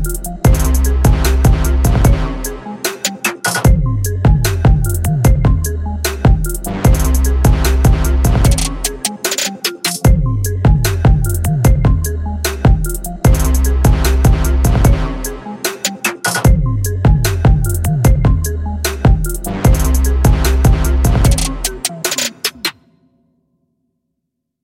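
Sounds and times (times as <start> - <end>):
trap drums: 0.0 - 22.8.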